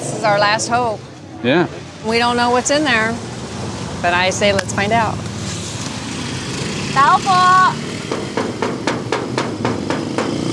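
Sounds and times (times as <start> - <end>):
speech: 0.2 - 3.3, 4.0 - 5.3, 7.0 - 8.4
knocking on a door: 8.0 - 10.5.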